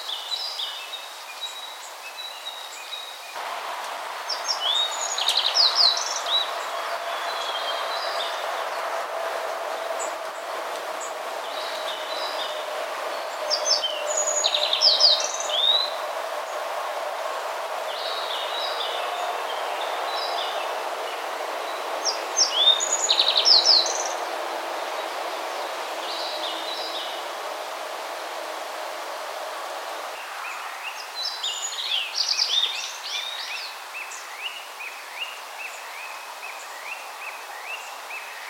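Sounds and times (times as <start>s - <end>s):
background hiss: 0.0s - 38.4s
Yellow Bunting singing: 3.4s - 31.0s.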